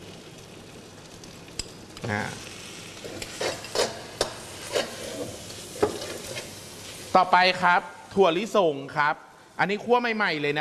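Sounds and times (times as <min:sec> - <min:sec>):
dried shrimp frying in a pan: 0:00.0 - 0:08.9
speech: 0:02.0 - 0:03.4, 0:07.1 - 0:10.5
scraping stirring of dried shrimp in a pan: 0:03.0 - 0:07.0.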